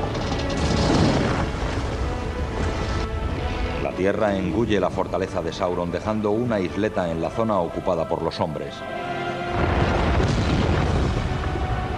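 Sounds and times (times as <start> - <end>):
Mount Doom volcano erupting in The Lord of the Rings film: 0.0 - 3.9, 9.4 - 11.9
speech: 4.0 - 9.1.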